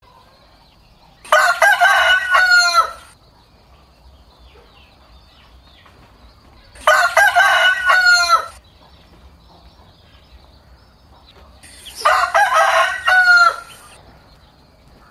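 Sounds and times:
rooster crowing: 0:01.2 - 0:03.2, 0:06.8 - 0:08.6, 0:11.7 - 0:14.0.

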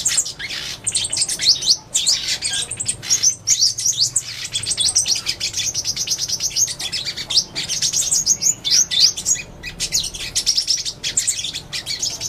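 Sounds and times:
sunbird singing: 0:00.0 - 0:12.2.

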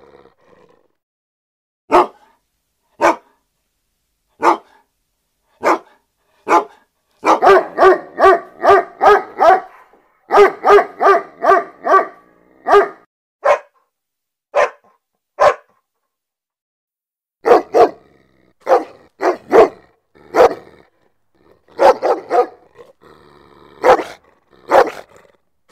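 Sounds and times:
German Shepherd barking: 0:01.9 - 0:02.4, 0:03.0 - 0:03.4, 0:04.4 - 0:04.9, 0:05.6 - 0:13.8, 0:14.5 - 0:15.8, 0:17.4 - 0:18.0, 0:18.6 - 0:20.7, 0:21.7 - 0:22.8, 0:23.8 - 0:25.1.

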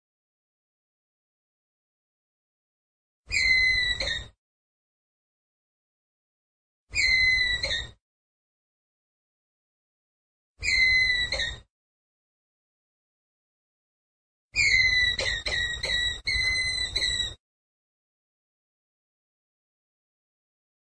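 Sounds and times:
ground squirrel whistled call: 0:03.3 - 0:04.3, 0:06.9 - 0:08.0, 0:10.6 - 0:11.6, 0:14.6 - 0:17.4.

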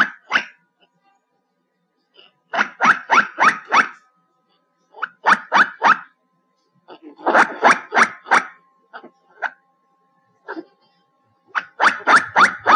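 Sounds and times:
black giant squirrel calls: 0:00.0 - 0:00.6, 0:02.5 - 0:04.0, 0:05.0 - 0:06.1, 0:07.2 - 0:08.6, 0:11.5 - 0:12.7.

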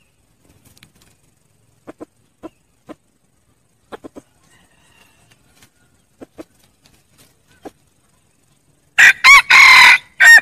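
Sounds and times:
red junglefowl crowing: 0:04.2 - 0:06.0, 0:09.0 - 0:10.4.

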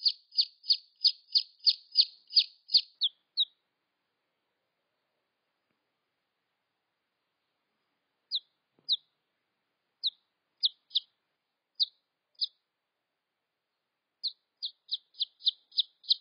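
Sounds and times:
red junglefowl chick peeps: 0:00.0 - 0:03.6, 0:08.3 - 0:09.1, 0:10.0 - 0:11.1, 0:11.8 - 0:12.6, 0:14.2 - 0:16.1.

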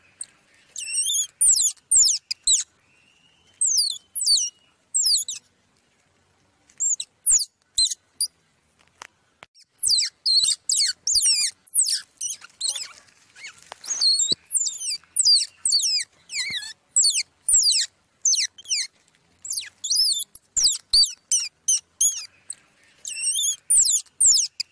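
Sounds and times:
squirrel pup squeaking: 0:00.0 - 0:02.8, 0:03.5 - 0:05.5, 0:06.7 - 0:08.4, 0:09.5 - 0:24.7.

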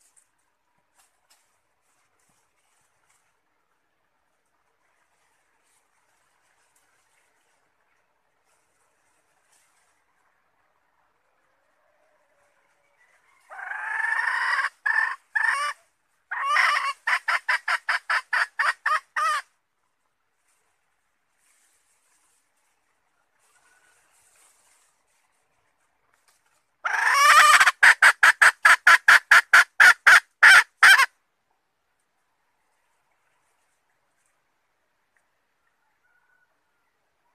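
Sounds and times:
red junglefowl hen cackling: 0:11.4 - 0:19.6, 0:26.8 - 0:31.2, 0:35.6 - 0:37.3.

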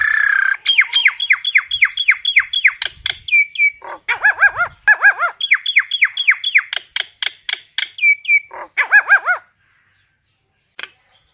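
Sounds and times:
common myna calls: 0:00.0 - 0:02.8, 0:03.4 - 0:06.6, 0:08.0 - 0:09.6.

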